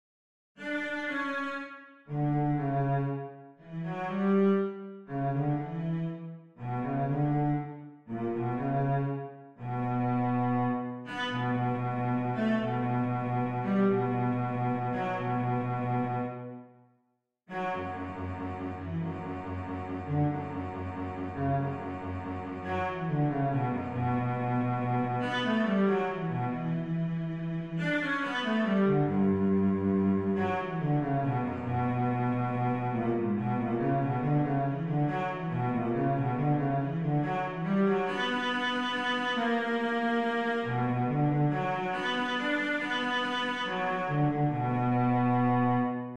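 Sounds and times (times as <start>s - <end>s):
summer cello melody: 0.6s - 16.7s, 17.5s - 46.1s.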